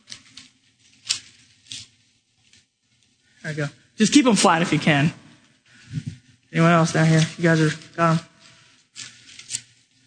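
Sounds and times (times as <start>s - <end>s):
audience members tearing sheets of paper: 0.0s - 2.0s, 8.9s - 9.8s
speech: 3.5s - 5.2s, 6.6s - 8.3s.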